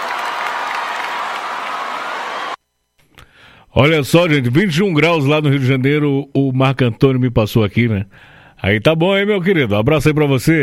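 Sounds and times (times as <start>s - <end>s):
audience applause: 0.0s - 2.6s
speech: 3.7s - 10.6s.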